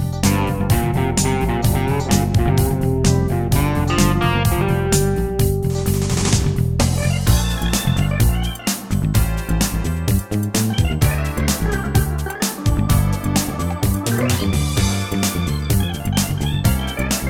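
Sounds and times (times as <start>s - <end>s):
pop rock music: 0.0s - 17.2s.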